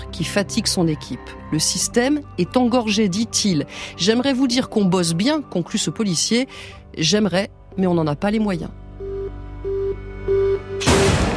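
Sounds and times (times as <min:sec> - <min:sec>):
speech: 0:00.1 - 0:08.8
short beeping tones: 0:09.0 - 0:10.8
gunshot: 0:10.8 - 0:11.3.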